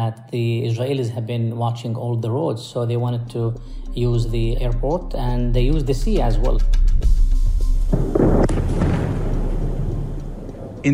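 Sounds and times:
speech: 0:00.0 - 0:07.1
distant airstrike explosions: 0:07.9 - 0:10.9.

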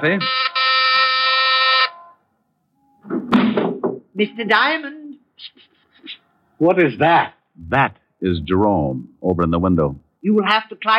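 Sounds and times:
speech: 0:00.0 - 0:00.4, 0:04.2 - 0:05.7, 0:06.6 - 0:10.9
electric doorbell buzzing: 0:00.2 - 0:02.2.

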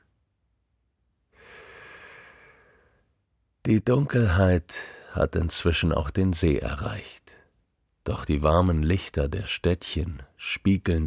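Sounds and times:
deep greedy intake of breath on a summer night by Lago Maggiore: 0:01.4 - 0:03.0
speech: 0:03.7 - 0:07.2, 0:08.0 - 0:11.0.

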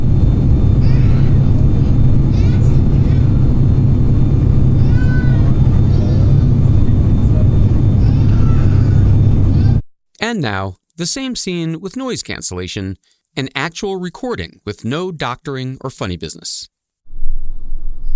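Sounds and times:
airplane cabin noise: 0:00.0 - 0:09.8
baby screaming on an airplane: 0:00.8 - 0:03.6, 0:04.7 - 0:06.9, 0:08.0 - 0:09.8
speech: 0:10.4 - 0:16.8.

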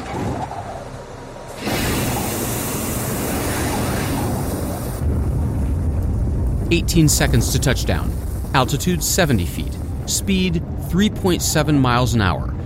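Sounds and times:
jetpack rocket engines firing during descent: 0:00.0 - 0:12.6
speech: 0:06.7 - 0:12.5.

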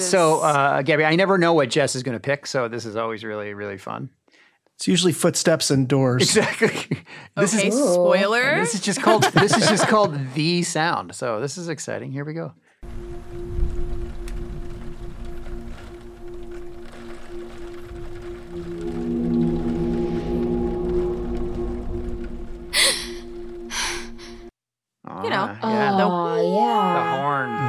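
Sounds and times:
speech: 0:00.1 - 0:04.2, 0:04.8 - 0:13.1, 0:25.4 - 0:27.5
laughter: 0:06.2 - 0:07.8, 0:08.5 - 0:10.5
combination of about eight horns including a boat horn: 0:12.8 - 0:24.5.

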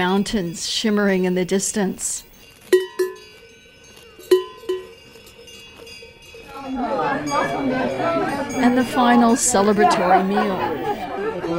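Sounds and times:
speech: 0:00.0 - 0:02.3, 0:06.8 - 0:10.9
cowbells clanking as cows come home to the Obermeerhof barn during transhumance: 0:02.4 - 0:10.4
laughter: 0:06.6 - 0:11.5.

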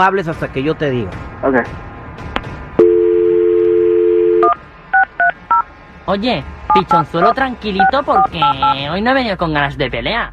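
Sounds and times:
speech: 0:00.0 - 0:02.3, 0:06.1 - 0:10.3
telephone dial tone: 0:02.8 - 0:04.6.

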